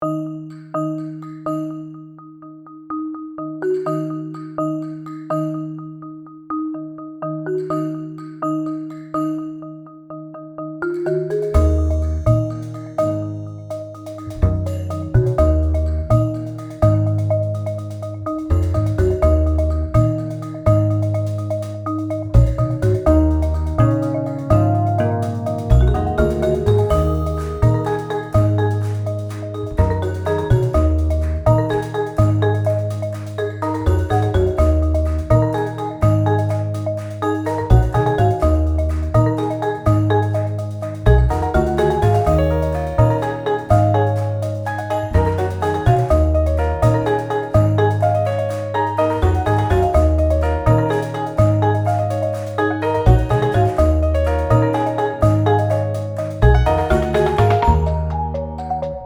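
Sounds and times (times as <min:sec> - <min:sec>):
marimba: 0:00.0 - 0:59.0.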